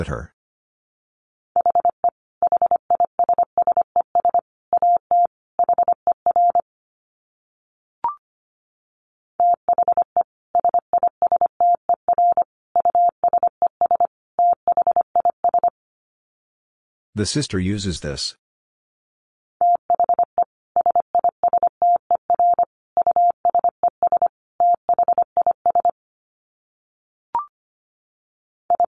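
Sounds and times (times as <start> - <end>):
speech: 0.0 - 0.4, 17.2 - 18.4
fast Morse code beeps: 1.6 - 6.6, 9.4 - 15.7, 19.6 - 25.9.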